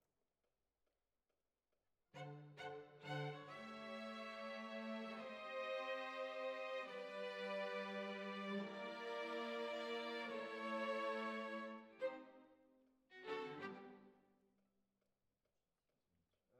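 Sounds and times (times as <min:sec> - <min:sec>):
violins: 0:02.2 - 0:12.4, 0:13.1 - 0:14.1.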